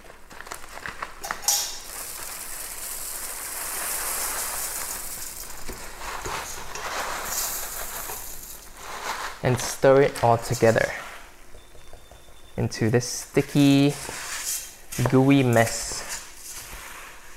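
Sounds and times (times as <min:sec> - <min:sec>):
dry rice cereal poured into a pot: 0:00.9 - 0:09.5
speech: 0:09.4 - 0:11.0, 0:12.6 - 0:14.2, 0:15.0 - 0:16.0.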